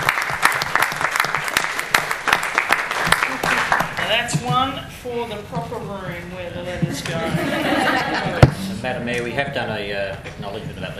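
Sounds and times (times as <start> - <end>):
crowd applauding: 0.0 - 4.2
speech: 4.2 - 10.9
laughter: 6.9 - 8.8.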